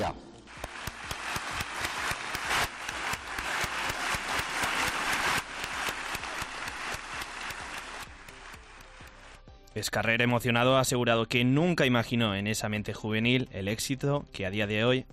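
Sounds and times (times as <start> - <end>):
audience applause: 0.5 - 9.4
speech: 9.8 - 15.1.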